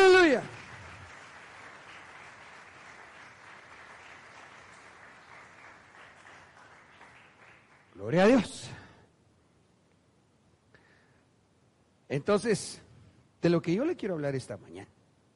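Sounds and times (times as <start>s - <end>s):
audience applause: 0.0s - 8.1s
speech: 8.0s - 8.7s, 12.1s - 12.8s, 13.4s - 15.0s.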